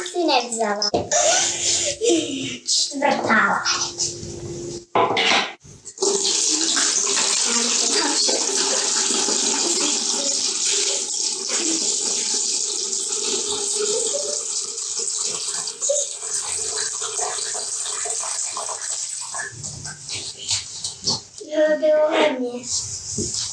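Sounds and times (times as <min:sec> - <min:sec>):
water running: 0:00.0 - 0:04.8, 0:05.7 - 0:23.5
speech: 0:00.2 - 0:04.3, 0:05.0 - 0:05.5
laughter: 0:01.0 - 0:02.4.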